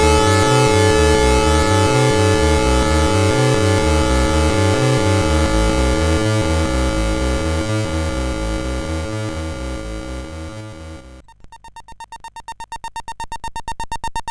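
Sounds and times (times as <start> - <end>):
25Hz synth tone on CSG8580R5 sound chip: 0.0 - 11.2.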